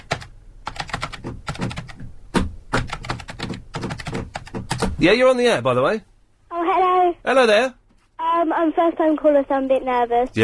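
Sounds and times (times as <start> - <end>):
typing on a computer keyboard: 0.0 - 2.1, 2.7 - 4.9
speech: 5.0 - 7.8, 8.4 - 10.4.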